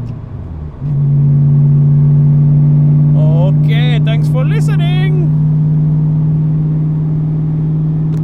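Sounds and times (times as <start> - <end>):
engine with Cobra Factory Headers revving at 4k to 6k with windows up: 0.0 - 8.2.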